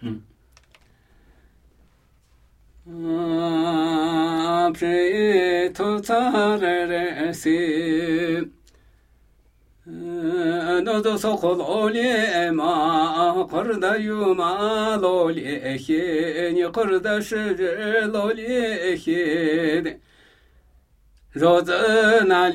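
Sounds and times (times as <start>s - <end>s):
Namuyi Tibetan ritual chanting: 2.8s - 8.6s, 9.8s - 20.0s, 21.3s - 22.5s.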